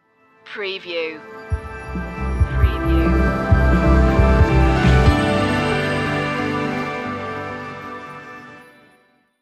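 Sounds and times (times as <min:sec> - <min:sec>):
music stinger: 0:01.5 - 0:08.5.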